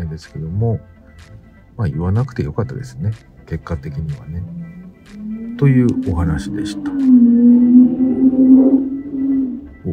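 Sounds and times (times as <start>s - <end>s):
speech: 0.2s - 7.6s
loud car passing by: 4.4s - 9.9s.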